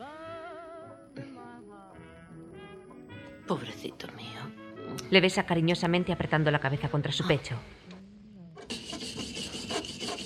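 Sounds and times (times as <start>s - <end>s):
speech: 3.5s - 7.8s
rubbing to polish metal rivets of the electric chair: 8.6s - 10.2s.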